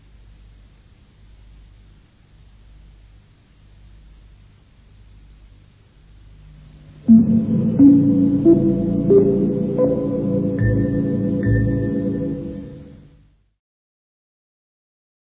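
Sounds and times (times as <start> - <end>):
radio interval signal: 7.0 - 13.1.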